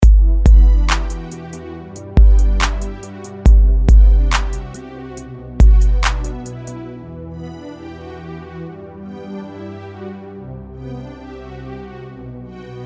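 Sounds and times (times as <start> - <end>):
R&B instrumental: 0.0 - 6.9.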